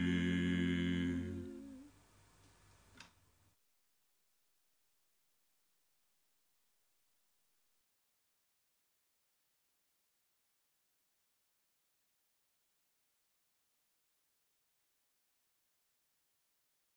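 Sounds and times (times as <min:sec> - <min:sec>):
bass line: 0:00.0 - 0:01.9.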